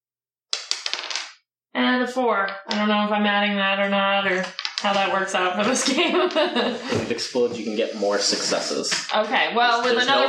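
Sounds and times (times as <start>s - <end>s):
dice rolling: 0.5s - 1.4s, 4.2s - 6.5s
speech: 1.8s - 10.2s
laughter: 5.6s - 8.5s.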